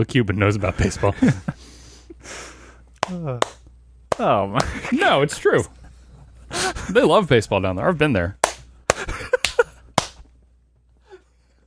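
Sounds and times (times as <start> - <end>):
speech: 0.0 - 1.6, 2.2 - 2.5, 3.1 - 3.6, 4.2 - 5.8, 6.6 - 8.4
hand claps: 3.0 - 4.8, 8.4 - 10.2.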